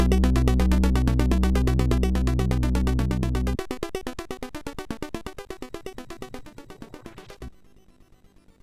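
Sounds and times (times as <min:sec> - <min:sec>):
chiptune melody on a MOS6581R4 sound chip: 0:00.0 - 0:03.6.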